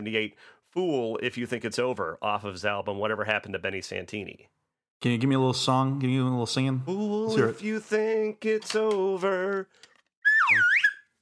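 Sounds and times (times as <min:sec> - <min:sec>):
speech: 0:00.0 - 0:09.9
voice imitating a slide whistle: 0:10.2 - 0:11.1.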